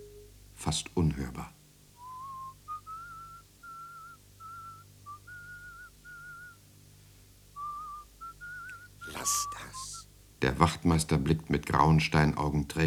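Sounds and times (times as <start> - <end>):
speech: 0.6 - 1.6, 10.4 - 12.8
soft whistling of a melody: 1.9 - 6.7, 7.5 - 10.1.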